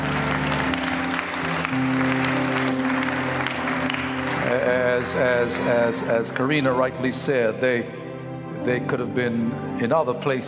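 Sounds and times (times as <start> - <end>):
audience clapping in praise: 0.0 - 6.6
low keyboard or organ chords: 0.0 - 10.4
speech: 5.0 - 8.0, 8.7 - 10.4.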